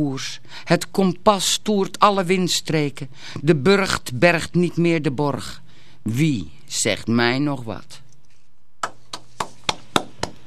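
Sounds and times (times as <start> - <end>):
speech: 0.0 - 8.0
one person clapping: 8.8 - 10.4.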